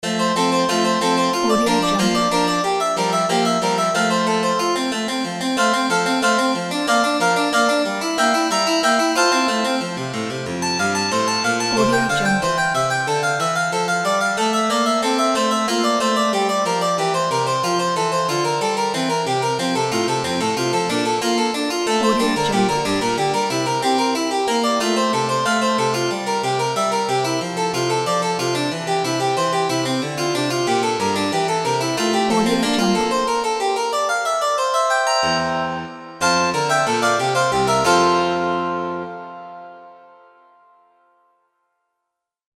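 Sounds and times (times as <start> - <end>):
harpsichord: 0.2 - 40.1.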